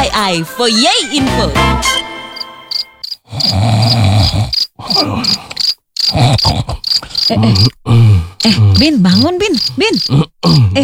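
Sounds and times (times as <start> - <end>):
speech: 0.1 - 2.0, 3.4 - 5.5, 6.2 - 7.8, 8.4 - 10.8
crickets chirping: 2.1 - 10.2
person snoring while asleep: 2.7 - 10.8.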